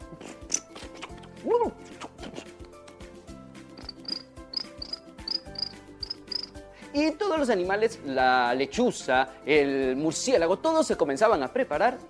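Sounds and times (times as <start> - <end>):
speech: 1.4 - 1.9, 7.0 - 12.0
crickets chirping: 3.8 - 6.6.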